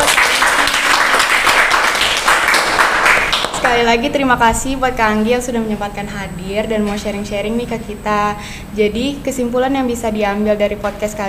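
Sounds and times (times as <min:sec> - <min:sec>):
audience applause: 0:00.0 - 0:03.8
speech: 0:03.7 - 0:11.2.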